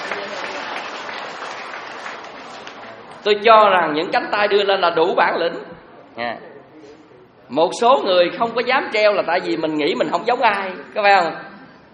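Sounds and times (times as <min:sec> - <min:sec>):
audience applauding during a Buddhist dharma talk: 0:00.0 - 0:03.2
speech: 0:03.2 - 0:06.5, 0:07.5 - 0:11.5.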